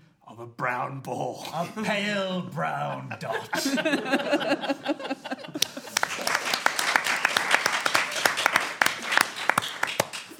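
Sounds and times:
speech: 0.4s - 5.2s
laughter: 3.0s - 9.7s
audience applause: 5.5s - 10.3s.

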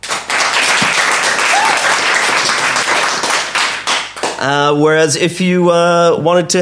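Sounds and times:
crowd applauding: 0.0s - 4.5s
speech: 4.4s - 6.6s.

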